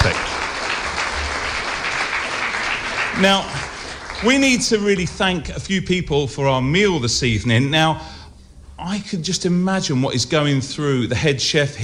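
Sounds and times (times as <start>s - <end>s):
audience applause: 0.0s - 5.4s
speech: 3.2s - 8.2s, 8.8s - 11.8s.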